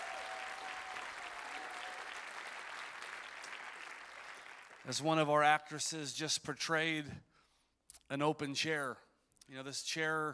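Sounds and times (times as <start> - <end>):
audience applause: 0.0 - 4.8
speech: 4.8 - 7.3, 8.1 - 10.3.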